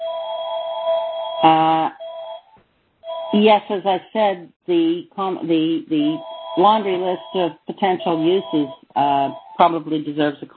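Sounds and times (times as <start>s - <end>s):
phone ringing: 0.0s - 3.8s, 5.9s - 9.7s
speech: 1.4s - 2.0s, 3.3s - 10.5s.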